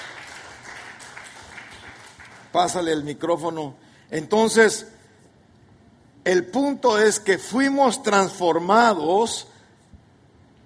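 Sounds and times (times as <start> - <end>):
church congregation clapping: 0.0 - 3.2
speech: 2.5 - 5.0, 6.3 - 9.5.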